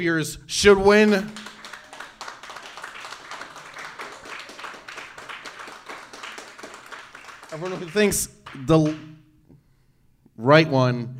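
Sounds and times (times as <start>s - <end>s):
speech: 0.0s - 1.5s, 7.6s - 9.2s, 10.4s - 11.1s
group applauding for a vote: 0.9s - 9.1s.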